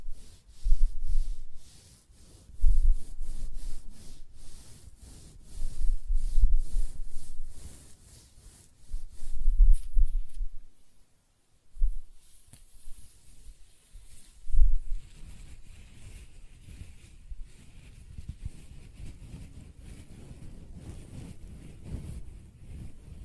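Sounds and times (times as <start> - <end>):
hair being scratched, brushed and stroked: 0.0 - 11.1, 11.7 - 23.2.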